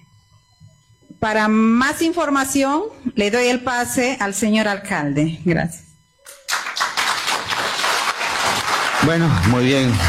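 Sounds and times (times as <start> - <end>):
speech: 1.2 - 5.8, 9.0 - 10.0
audience applause: 6.5 - 10.0.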